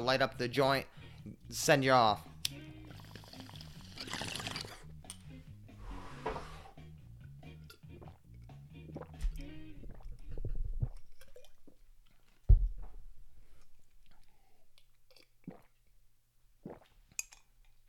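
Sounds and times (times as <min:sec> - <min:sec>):
speech: 0:00.0 - 0:02.6
ripping a coffee bong: 0:02.8 - 0:04.9
slamming iced coffee with wet gulping: 0:02.8 - 0:04.9, 0:07.9 - 0:12.2, 0:14.0 - 0:15.9, 0:16.6 - 0:17.0.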